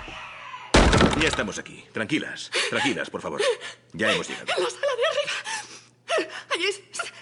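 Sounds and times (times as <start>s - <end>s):
door slammed hard: 0.8s - 1.6s
speech: 1.2s - 5.5s, 6.6s - 6.8s.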